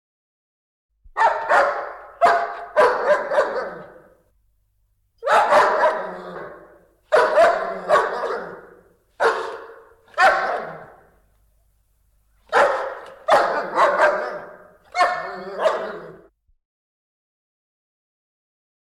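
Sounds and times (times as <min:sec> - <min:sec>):
dog barking: 0:01.1 - 0:04.2, 0:05.2 - 0:11.2, 0:12.4 - 0:16.3.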